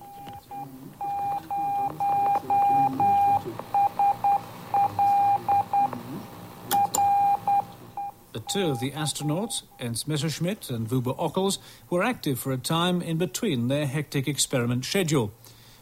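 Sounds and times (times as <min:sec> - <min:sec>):
Morse code beacon from spacecraft: 0:00.0 - 0:06.1, 0:06.7 - 0:09.9
hissing rumbling radio background: 0:00.0 - 0:12.4
speech: 0:08.5 - 0:15.6.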